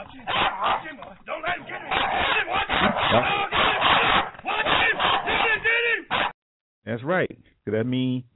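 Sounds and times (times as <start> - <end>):
speech: 0.0 - 3.5, 7.1 - 8.3
dog barking: 0.2 - 1.0, 1.7 - 6.4.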